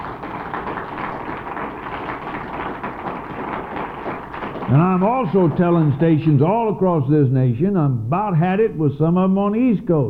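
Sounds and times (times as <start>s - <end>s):
audience applause: 0.0s - 6.5s
speech: 4.7s - 10.0s.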